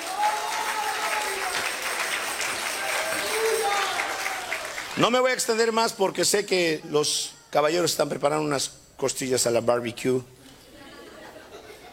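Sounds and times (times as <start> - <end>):
audience applause: 0.0 - 5.2
speech: 5.0 - 10.4
laughter: 10.5 - 11.9.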